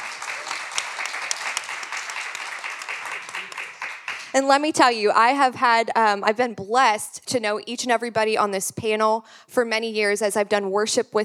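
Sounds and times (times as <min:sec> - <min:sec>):
audience applause: 0:00.0 - 0:04.4
speech: 0:04.4 - 0:11.2.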